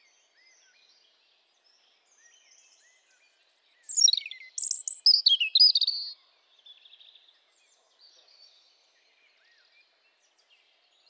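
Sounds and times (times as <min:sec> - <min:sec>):
European robin tinkling song phrase: 0:03.6 - 0:06.2.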